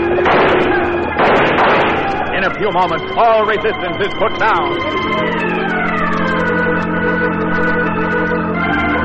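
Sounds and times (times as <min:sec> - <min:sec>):
gunfire from several guns: 0:00.0 - 0:03.4
speech: 0:02.5 - 0:08.9.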